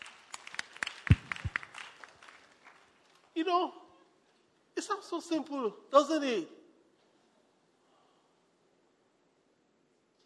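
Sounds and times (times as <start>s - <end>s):
audience clapping: 0.0s - 3.4s
speech: 3.4s - 3.8s, 4.8s - 6.6s.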